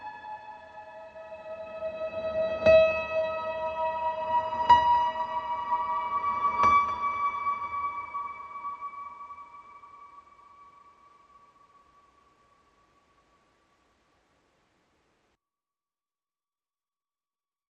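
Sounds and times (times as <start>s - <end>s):
piano: 0.0s - 13.9s.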